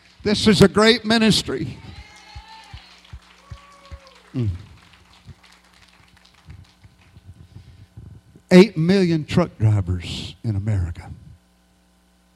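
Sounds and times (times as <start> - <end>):
audience applauding: 0.0 - 7.4
speech: 0.2 - 1.8, 4.4 - 4.6, 8.5 - 11.2.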